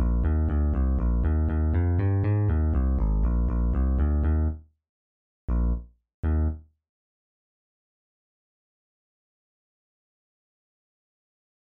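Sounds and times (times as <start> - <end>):
bass: 0.0 - 4.6, 5.5 - 6.7.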